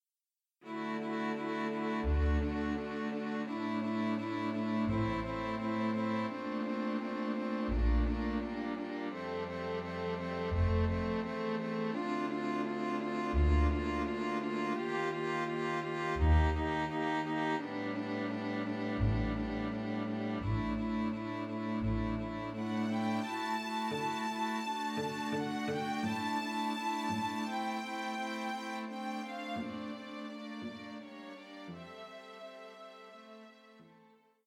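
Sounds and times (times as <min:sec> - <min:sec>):
string orchestra: 0:00.7 - 0:34.1.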